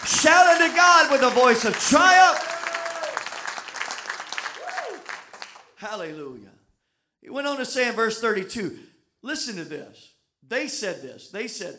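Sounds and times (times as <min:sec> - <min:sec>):
church congregation clapping during a worship service: 0:00.0 - 0:05.8
speech: 0:00.2 - 0:02.5, 0:05.8 - 0:06.6, 0:07.2 - 0:11.7.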